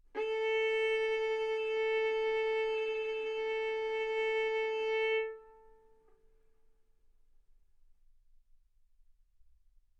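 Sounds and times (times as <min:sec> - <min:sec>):
violin bowed mezzo-forte on the A string, A4 and B4: 0:00.2 - 0:05.8.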